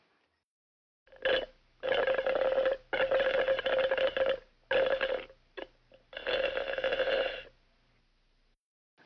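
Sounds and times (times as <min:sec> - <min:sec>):
juice slurped through a straw: 0:01.1 - 0:07.5.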